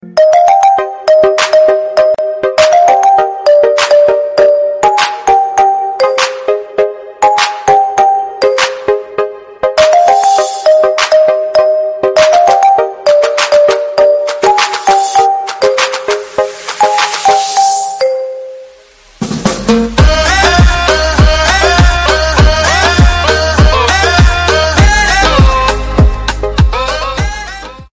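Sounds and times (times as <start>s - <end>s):
instrumental ringtone: 0.0s - 27.6s.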